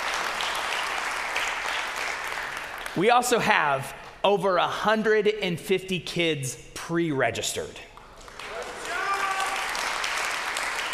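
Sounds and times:
audience applause: 0.0 - 3.0, 8.1 - 10.9
speech: 3.0 - 7.9.

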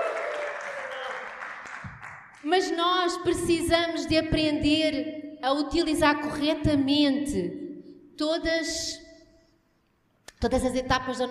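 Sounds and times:
people clapping: 0.0 - 2.6
speech: 2.4 - 7.6, 8.2 - 9.0, 10.4 - 11.2.

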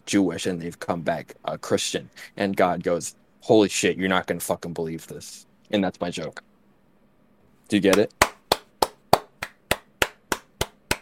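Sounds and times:
speech: 0.1 - 6.5, 7.7 - 8.2
person clapping: 7.9 - 10.9.

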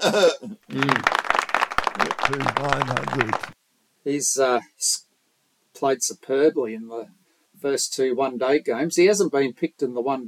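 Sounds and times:
speech: 0.0 - 1.3, 2.3 - 3.5, 4.1 - 5.0, 5.8 - 10.2
lively voices: 0.7 - 3.6
scattered clapping: 0.7 - 3.6.

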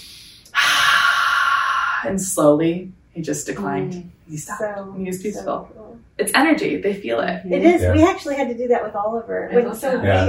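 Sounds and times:
loud airy exhale demonstrating slow calming breathing: 0.0 - 2.0
speech: 2.0 - 10.2.

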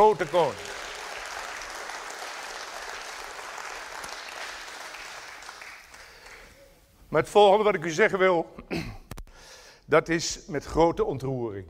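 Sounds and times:
speech: 0.0 - 0.8, 7.1 - 9.0, 9.9 - 11.6
applause: 0.0 - 6.6.

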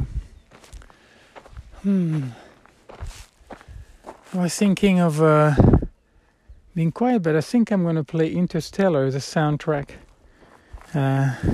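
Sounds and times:
footsteps climbing uphill on a mountain path near Jamilena: 0.0 - 5.9, 9.9 - 11.5
speech: 1.8 - 2.4, 4.3 - 5.8, 6.8 - 10.0, 10.9 - 11.5.

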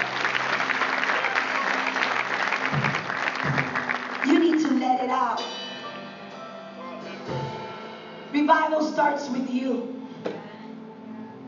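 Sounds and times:
audience applauding: 0.0 - 4.9
speech: 8.5 - 10.0.

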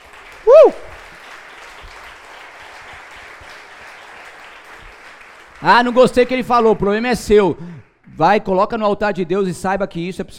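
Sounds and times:
audience applause: 0.0 - 8.0
speech: 0.4 - 0.9, 5.6 - 10.3.

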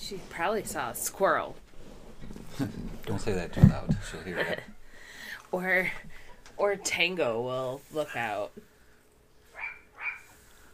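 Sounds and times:
speech: 0.1 - 1.6, 2.5 - 4.8, 5.5 - 8.7
small dog barking: 9.6 - 10.3.

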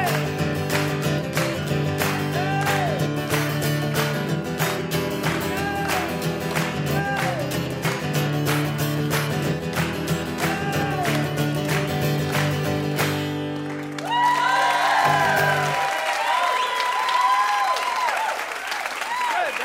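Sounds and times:
audience applause: 0.1 - 19.6.

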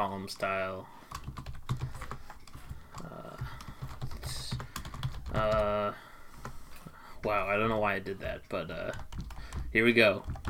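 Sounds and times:
speech: 0.0 - 1.5, 5.3 - 6.0, 7.2 - 9.1, 9.7 - 10.4
typing on a computer keyboard: 0.3 - 5.8, 8.7 - 10.4.

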